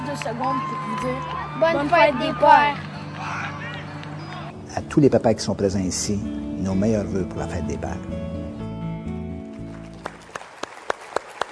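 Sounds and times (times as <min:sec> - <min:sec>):
audience applause: 0:00.0 - 0:04.6, 0:09.6 - 0:11.4
speech: 0:00.2 - 0:02.9, 0:04.8 - 0:08.4.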